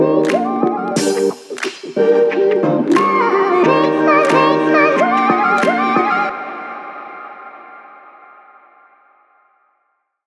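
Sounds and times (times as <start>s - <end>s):
energetic sport fashion hip hop music, short version: 0.0s - 8.1s.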